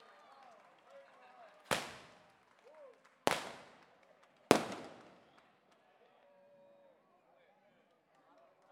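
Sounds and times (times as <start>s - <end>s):
fireworks: 1.7s - 2.4s, 3.2s - 5.5s.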